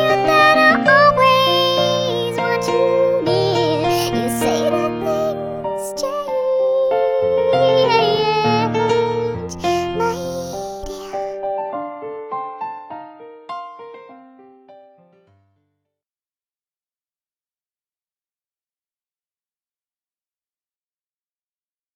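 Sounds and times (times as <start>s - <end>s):
singing pitch-shifted to a mouse voice: 0.0s - 11.4s.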